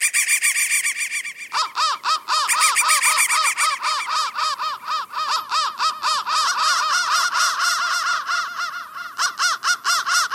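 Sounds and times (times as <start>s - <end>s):
crow deep hoarse arched calls: 1.0s - 10.3s.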